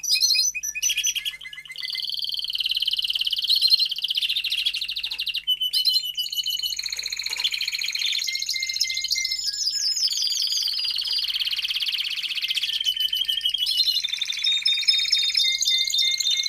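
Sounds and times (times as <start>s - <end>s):
domestic canary singing: 0.0s - 16.4s.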